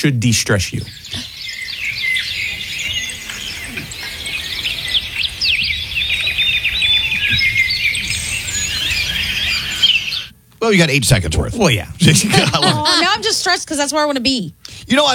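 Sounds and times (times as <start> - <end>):
speech: 0.0 - 1.3, 10.6 - 15.1
birds singing outdoors: 0.6 - 10.4
laughter: 12.0 - 13.5.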